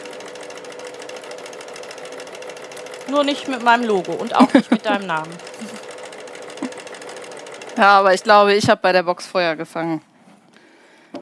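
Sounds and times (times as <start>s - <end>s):
sewing machine stitching: 0.0s - 8.7s
speech: 3.1s - 5.8s, 7.8s - 10.1s
laughter: 4.2s - 5.8s.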